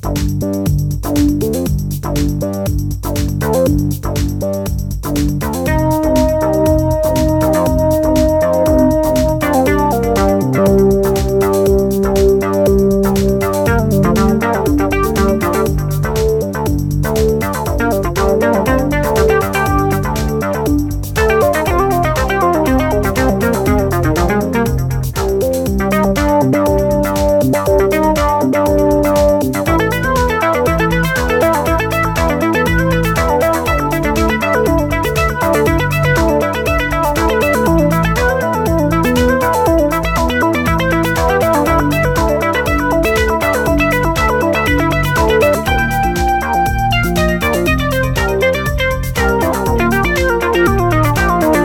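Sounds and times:
OB-E BassFuze synth lead: 0:00.2 - 0:51.6.

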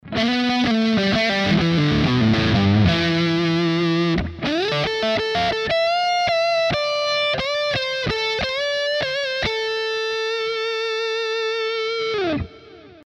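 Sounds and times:
Epiphone Custom Les Paul electric guitar neck pickup lead: 0:00.0 - 0:13.0.

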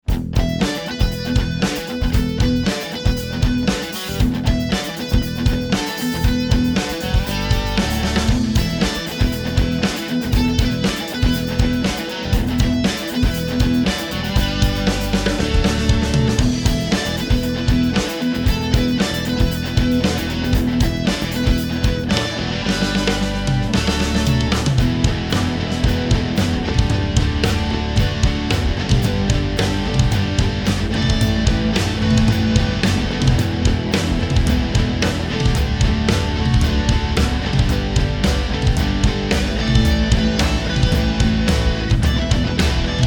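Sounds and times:
drum kit test song: 0:00.0 - 0:43.0.

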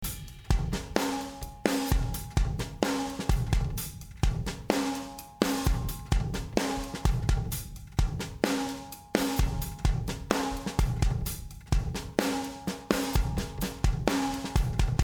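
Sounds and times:
drum loop: 0:00.0 - 0:15.0.

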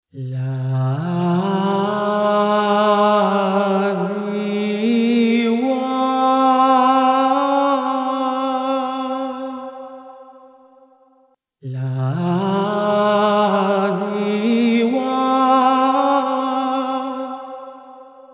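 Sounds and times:
lyrical vocal phrases: 0:00.1 - 0:10.3, 0:11.6 - 0:18.3.

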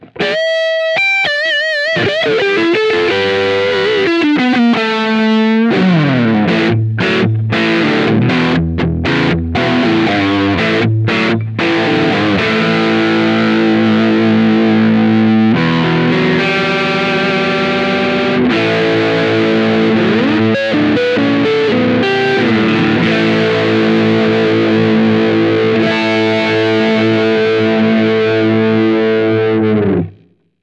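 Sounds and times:
Schecter C-1 Exotic electric guitar neck humbucker with drive: 0:00.0 - 0:30.5.

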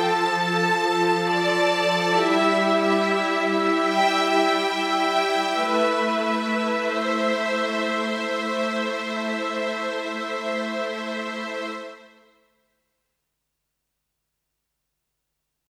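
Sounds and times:
full string section playing: 0:00.0 - 0:12.0.

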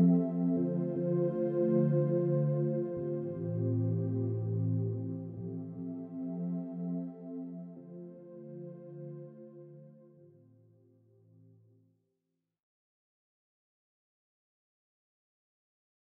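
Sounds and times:
OB-6 modern synthesizer pad: 0:00.0 - 0:11.0.

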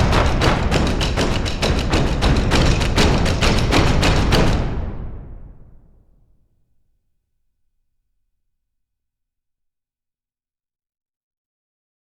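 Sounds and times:
Sequential Prophet X synthesizer taiko-like drums: 0:00.0 - 0:06.0.

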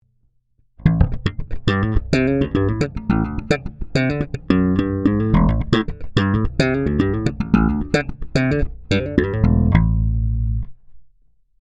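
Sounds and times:
Ibanez EHB1505 bass guitar slapped, neck and bridge passive pickups: 0:00.8 - 0:10.8.

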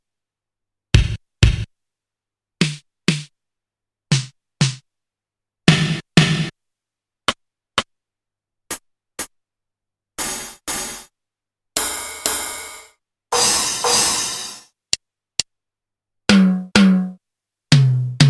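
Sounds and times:
Korg DDD-5 drum machine single sounds: 0:01.0 - 0:01.7, 0:02.6 - 0:03.3, 0:04.1 - 0:04.8, 0:05.7 - 0:06.5, 0:10.2 - 0:11.0, 0:11.8 - 0:14.6, 0:16.3 - 0:17.2, 0:17.7 - 0:18.2.

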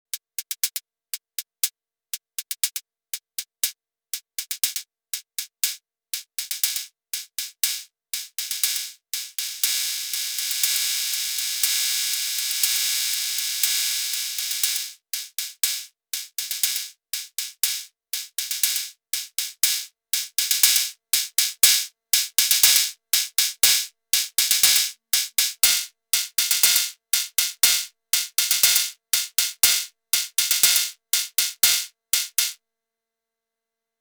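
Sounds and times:
Arturia DrumBrute Impact drum machine cymbal: 0:07.6 - 0:32.6.

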